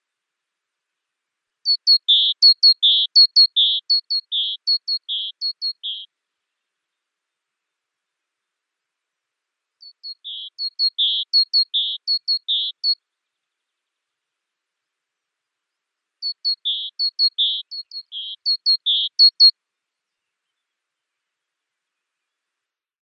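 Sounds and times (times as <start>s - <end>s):
great tit call sequence: 1.7s - 6.1s, 9.8s - 13.0s, 16.2s - 19.5s.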